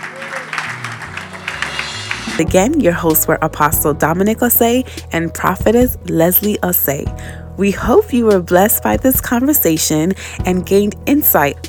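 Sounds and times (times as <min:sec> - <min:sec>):
audience clapping hands: 0:00.0 - 0:02.4
speech: 0:02.3 - 0:11.6.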